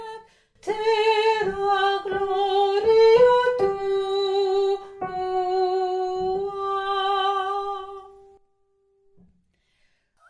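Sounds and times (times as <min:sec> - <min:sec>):
voices singing a sanctus: 0:00.7 - 0:08.4.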